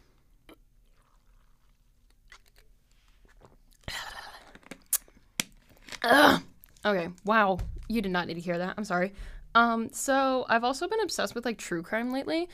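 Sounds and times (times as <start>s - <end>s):
person sipping tea: 0.4s - 5.2s
speech: 6.0s - 12.5s.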